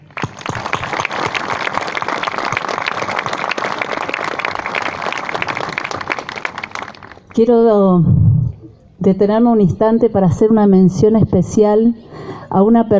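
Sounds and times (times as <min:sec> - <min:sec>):
crowd applause: 0:00.0 - 0:07.4
speech: 0:07.4 - 0:08.2, 0:09.0 - 0:12.9.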